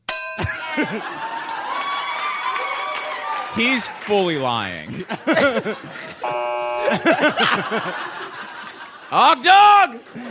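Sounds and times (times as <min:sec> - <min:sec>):
ding sound effect: 0:00.0 - 0:00.8
laughter: 0:00.4 - 0:02.2, 0:04.8 - 0:10.2
speech: 0:00.8 - 0:01.3, 0:03.6 - 0:08.4, 0:09.1 - 0:10.2.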